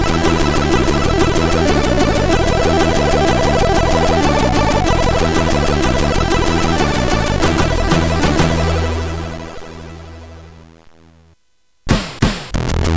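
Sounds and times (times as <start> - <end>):
spacey SID CSG8580R5 chip music: 0.0 - 10.0.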